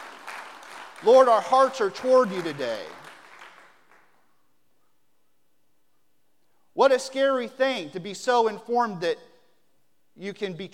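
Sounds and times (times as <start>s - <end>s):
audience clapping in praise: 0.0s - 4.3s
speech: 1.0s - 3.0s, 6.8s - 9.3s, 10.2s - 10.7s.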